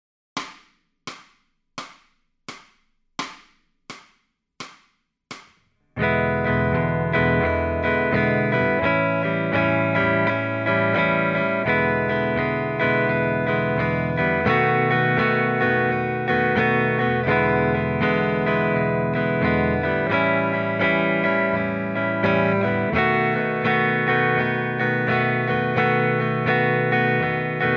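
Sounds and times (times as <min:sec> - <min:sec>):
electric guitar lead backing track: 0:06.0 - 0:27.7.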